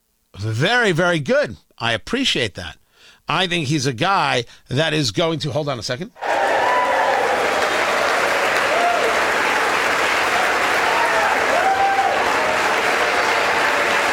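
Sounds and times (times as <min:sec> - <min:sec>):
speech: 0:00.4 - 0:06.5
applause in a chamber: 0:06.2 - 0:14.1.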